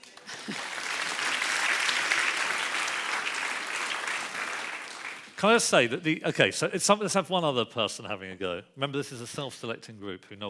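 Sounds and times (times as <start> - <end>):
round of applause from many hands: 0.0 - 5.5
speech: 5.4 - 10.4.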